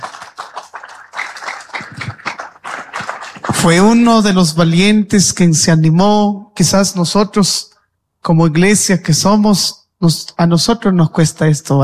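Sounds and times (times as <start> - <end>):
audience applause: 0.0 - 4.1
speech: 3.6 - 7.7, 8.3 - 11.8.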